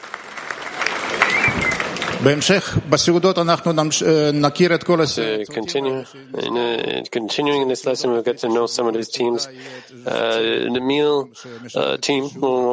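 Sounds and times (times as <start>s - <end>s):
audience applause: 0.0s - 2.8s
speech: 2.2s - 12.7s.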